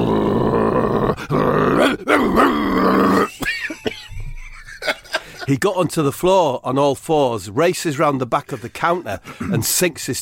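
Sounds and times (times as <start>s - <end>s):
man growling and grunting like a dog: 0.0s - 3.5s
laughter: 3.4s - 5.6s
speech: 5.5s - 10.2s.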